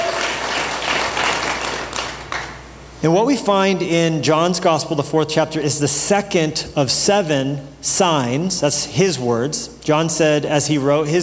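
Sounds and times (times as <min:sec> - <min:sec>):
church congregation applauding to welcome a first-time guest: 0:00.0 - 0:02.6
speech: 0:03.0 - 0:11.2.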